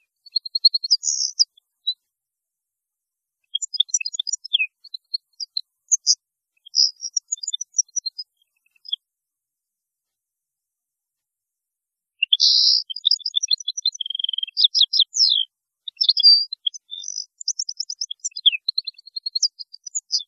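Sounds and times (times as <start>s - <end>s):
European goldfinch song: 0.0s - 2.1s, 3.4s - 9.0s, 12.2s - 20.2s.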